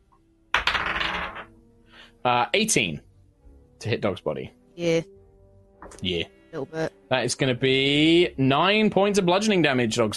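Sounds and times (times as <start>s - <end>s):
dice rolling and clattering on table: 0.6s - 1.5s
speech: 2.2s - 3.1s, 3.8s - 5.2s, 5.8s - 10.1s.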